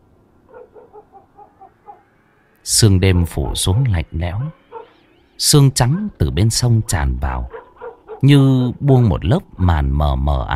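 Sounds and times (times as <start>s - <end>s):
dog barking in a village at night: 0.5s - 2.1s, 3.8s - 5.0s, 5.8s - 6.2s, 7.5s - 8.3s
speech: 2.6s - 4.6s, 5.4s - 7.6s, 8.2s - 10.5s.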